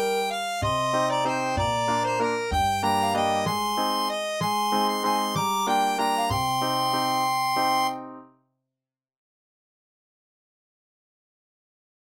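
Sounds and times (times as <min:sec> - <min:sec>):
Finnish ballad: 0:00.0 - 0:08.2.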